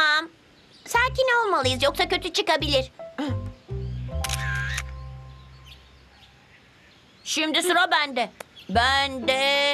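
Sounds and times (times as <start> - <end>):
speech: 1.1 - 3.4, 7.3 - 9.7
camera shutter clack taking a photo: 4.2 - 5.0.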